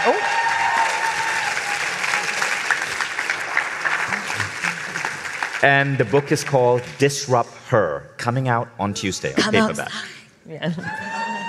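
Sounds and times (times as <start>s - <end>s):
audience applause for a speaker at the close of a talk: 0.0s - 7.4s
speech: 5.6s - 11.2s.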